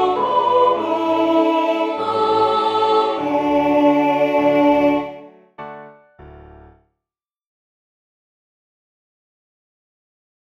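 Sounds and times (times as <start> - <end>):
ensemble singing Gypsy songs tutti: 0.0 - 5.4.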